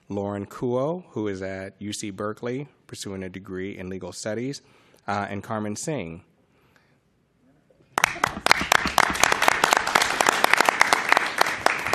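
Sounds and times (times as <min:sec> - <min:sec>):
speech: 0:00.1 - 0:06.3
audience clapping: 0:07.9 - 0:11.9.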